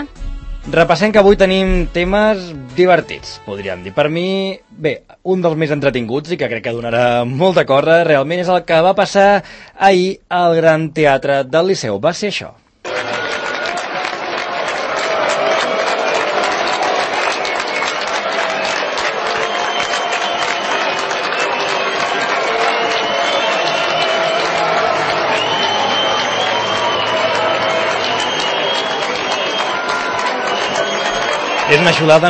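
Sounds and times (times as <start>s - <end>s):
speech: 0.0s - 12.6s, 31.7s - 32.2s
opera house audience applauding: 12.9s - 32.2s
opera house audience whistling: 17.4s - 32.2s.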